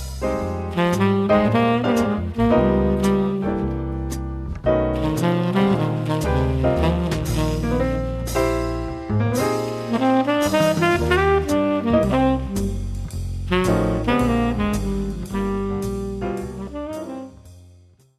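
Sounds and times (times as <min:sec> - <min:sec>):
tenor saxophone: 0:00.6 - 0:09.0, 0:09.6 - 0:17.6.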